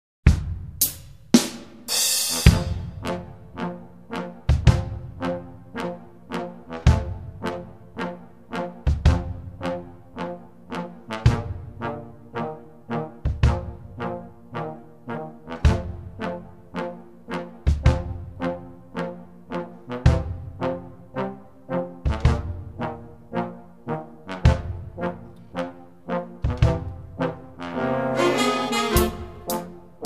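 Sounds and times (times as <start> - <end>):
jazz music: 0.4 - 30.0.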